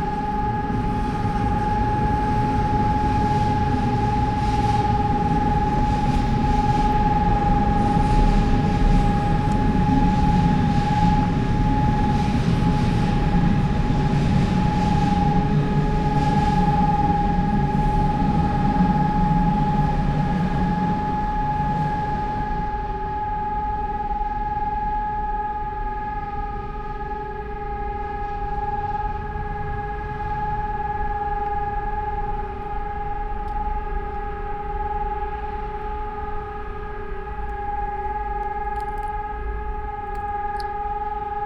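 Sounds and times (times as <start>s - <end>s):
sirens being tested: 0.0s - 41.4s.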